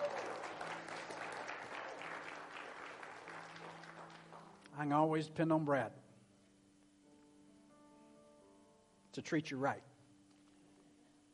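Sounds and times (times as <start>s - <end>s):
audience hand clap: 0.0s - 4.8s
speech: 4.8s - 6.0s, 9.2s - 9.9s.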